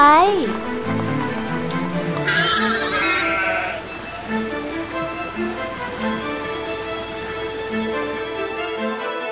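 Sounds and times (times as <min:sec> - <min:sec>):
rain-like patter: 0:00.0 - 0:09.2
goat bleating: 0:02.2 - 0:03.9.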